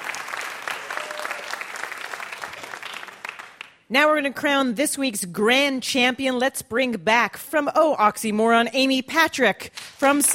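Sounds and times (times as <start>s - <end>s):
audience applause: 0.0s - 3.8s
speech: 3.9s - 10.3s.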